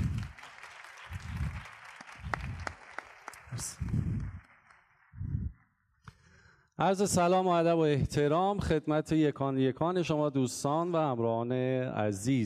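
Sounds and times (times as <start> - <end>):
audience applause at a labour law and social security seminar: 0.0 - 5.0
speech: 3.5 - 4.0, 6.8 - 12.4.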